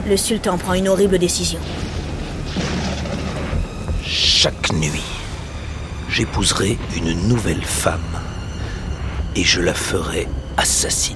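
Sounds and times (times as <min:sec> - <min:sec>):
speech: 0:00.0 - 0:02.0, 0:04.1 - 0:05.2, 0:06.1 - 0:08.3, 0:09.4 - 0:11.1
thunder sound effect: 0:01.3 - 0:09.0.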